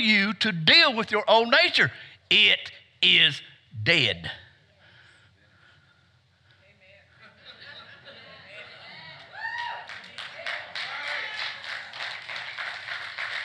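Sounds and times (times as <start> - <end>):
speech: 0.0 - 4.4
laughter: 7.2 - 9.2
audience applauding: 9.6 - 13.4.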